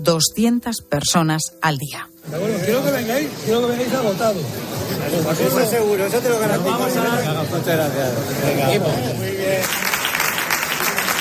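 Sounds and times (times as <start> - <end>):
speech: 0.0 - 9.9
applause for departing aid workers: 9.5 - 11.2.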